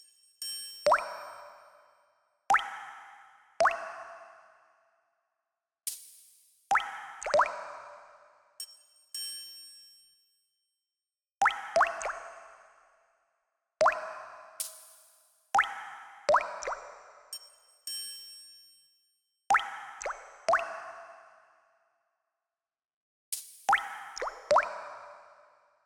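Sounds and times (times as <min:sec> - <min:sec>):
water drops with reverb: 0:00.8 - 0:01.7, 0:02.5 - 0:04.4, 0:06.7 - 0:08.0, 0:11.4 - 0:12.6, 0:13.8 - 0:14.9, 0:15.6 - 0:17.5, 0:19.5 - 0:21.2, 0:23.4 - 0:25.3.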